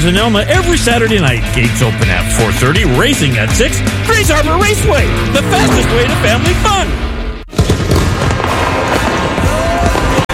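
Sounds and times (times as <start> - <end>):
speech: 0.0 - 7.1
fireworks crackling and popping: 7.5 - 10.3.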